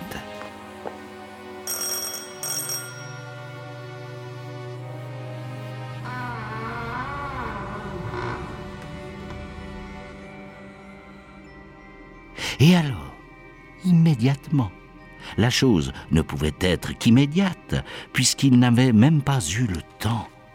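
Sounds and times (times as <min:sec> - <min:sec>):
doorbell ringing: 0:01.6 - 0:03.6
speech: 0:12.6 - 0:13.0, 0:13.8 - 0:20.3.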